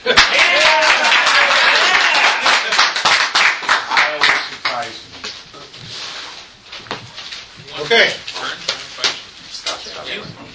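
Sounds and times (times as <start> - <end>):
group of people clapping: 0.0 - 5.0.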